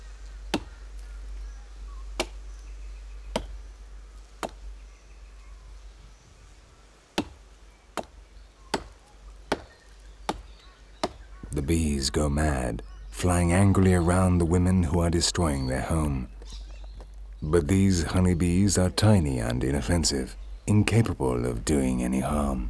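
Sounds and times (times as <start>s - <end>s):
axe chopping into a tree trunk: 0.5s - 0.8s, 3.3s - 3.6s, 7.2s - 7.4s, 8.7s - 11.2s
speech: 11.6s - 16.6s, 17.4s - 22.6s.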